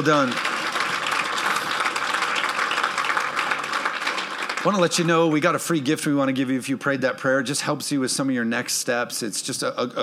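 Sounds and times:
speech: 0.0s - 0.5s, 4.6s - 10.0s
audience clapping: 0.0s - 6.0s.

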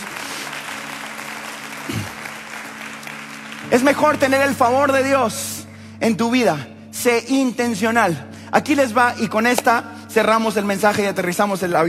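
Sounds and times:
audience applause: 0.0s - 4.6s
speech: 1.9s - 2.2s, 3.7s - 11.8s.

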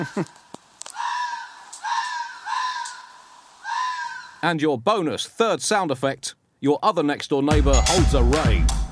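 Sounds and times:
speech: 0.0s - 0.4s, 4.4s - 8.8s
two foxes screaming while mating: 0.9s - 4.4s.

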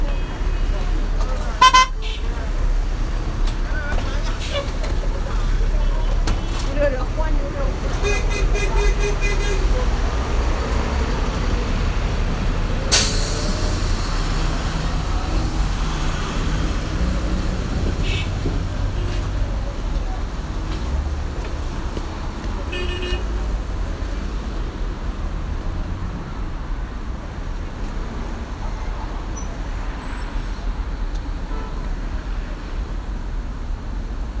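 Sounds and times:
voices: 0.0s - 33.2s
traffic rumble in Beijing: 0.0s - 34.3s
car horn toot: 1.6s - 2.3s, 22.7s - 23.4s.

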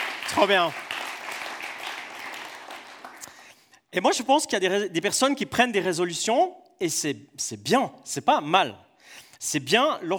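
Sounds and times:
audience applause: 0.0s - 3.3s
speech: 0.3s - 0.8s, 3.9s - 10.1s.

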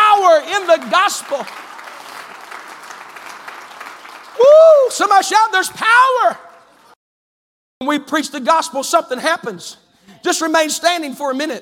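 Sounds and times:
crowd clapping: 0.0s - 5.6s
speech: 0.8s - 1.8s, 4.9s - 6.5s, 7.8s - 11.5s.

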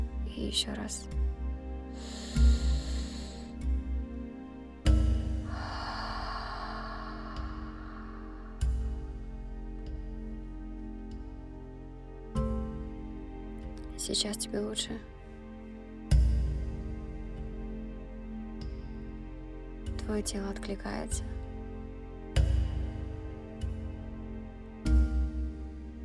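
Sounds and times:
low steady drone: 0.0s - 26.0s
speech: 0.4s - 1.2s, 2.0s - 2.7s, 14.1s - 15.2s, 20.1s - 21.4s
soft exhales through the mouth during a guided breathing exercise: 2.0s - 3.6s, 5.5s - 9.0s.

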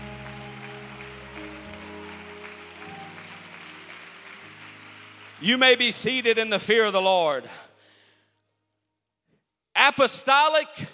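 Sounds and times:
audience clapping: 0.0s - 7.0s
speech: 5.4s - 7.7s, 9.9s - 10.9s.

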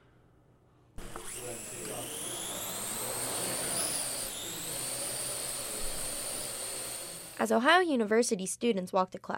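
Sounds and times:
drone buzzing overhead: 1.0s - 7.5s
speech: 7.4s - 9.3s.

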